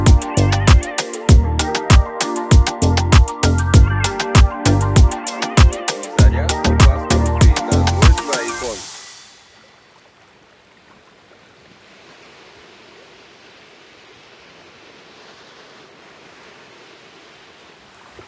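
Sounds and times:
beach vibes instrumental music: 0.0s - 9.5s.

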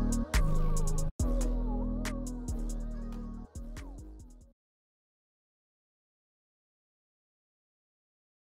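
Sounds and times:
instrumental type beat: 0.0s - 4.5s.

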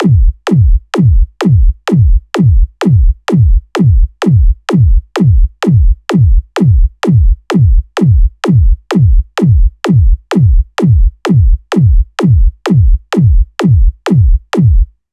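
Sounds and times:
beat: 0.0s - 14.9s.

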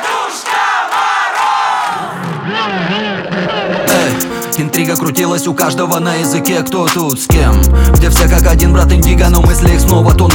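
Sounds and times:
crowd shouting together to call someone: 0.0s - 4.2s
speech: 2.5s - 3.6s, 4.6s - 10.3s.

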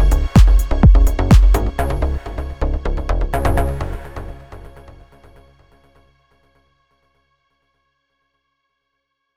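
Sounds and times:
trance music: 0.0s - 5.6s.

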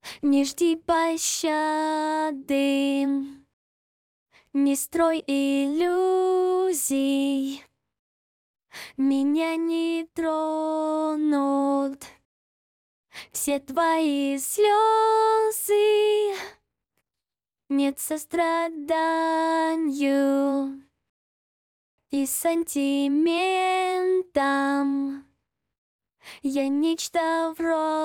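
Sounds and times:
a cappella singing: 0.0s - 3.5s, 4.5s - 7.7s, 8.9s - 12.2s, 13.3s - 16.6s, 17.7s - 20.9s, 22.1s - 25.3s, 26.4s - 28.0s.

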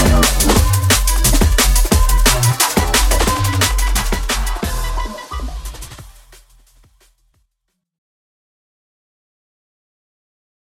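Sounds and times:
drum and bass music: 0.0s - 7.4s.

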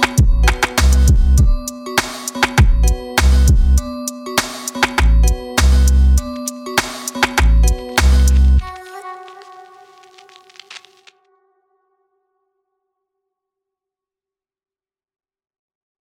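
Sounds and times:
backing track: 0.0s - 9.7s.

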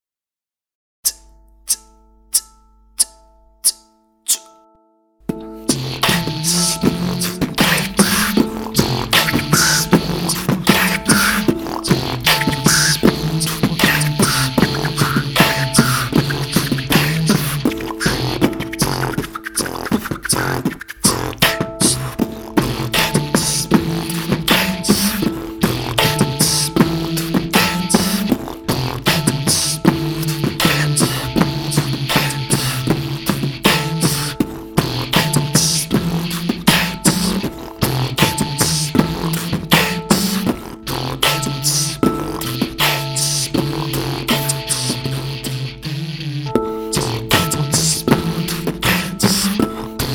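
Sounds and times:
music beat: 1.0s - 50.1s.

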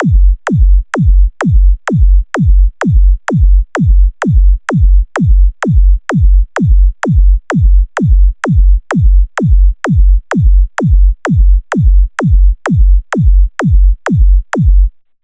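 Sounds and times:
beat: 0.0s - 15.0s.

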